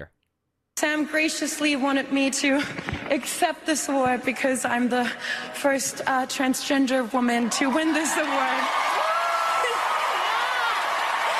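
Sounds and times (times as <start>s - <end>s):
speech: 0.8s - 8.9s
audience cheering and clapping: 7.2s - 11.3s.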